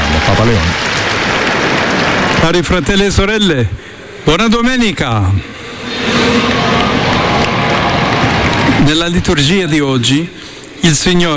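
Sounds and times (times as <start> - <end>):
crowd applauding in a public square: 0.0 - 3.2, 5.6 - 10.1
speech: 0.4 - 1.4, 2.4 - 6.8, 8.8 - 11.3.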